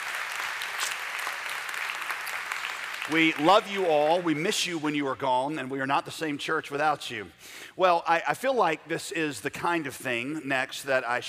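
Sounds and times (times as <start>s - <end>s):
church congregation applauding to welcome back college students: 0.0s - 4.4s
speech: 3.1s - 11.2s.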